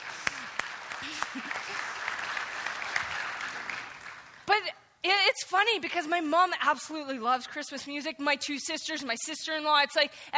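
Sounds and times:
audience clapping: 0.0s - 4.5s
speech: 1.0s - 1.7s, 5.4s - 10.3s.

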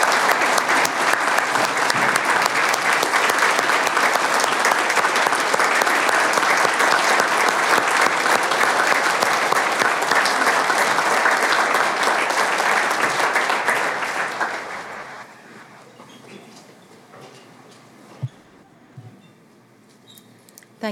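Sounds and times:
audience applause: 0.0s - 15.8s.

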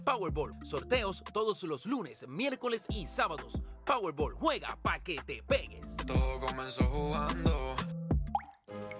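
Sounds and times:
speech: 0.1s - 8.0s
water drops falling into assorted containers: 8.2s - 8.9s.

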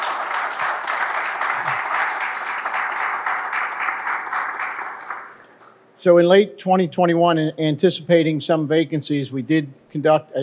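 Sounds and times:
audience applause: 0.0s - 5.6s
speech: 6.0s - 10.4s.

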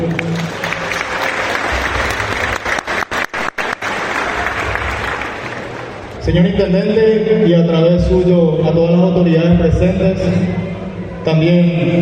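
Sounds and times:
audience applause: 0.0s - 6.2s
speech: 6.3s - 11.9s.

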